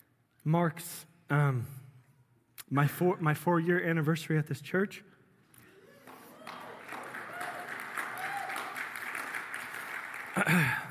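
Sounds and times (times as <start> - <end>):
speech: 0.4 - 1.8, 2.7 - 5.1, 10.4 - 10.8
audience clapping: 5.8 - 10.8.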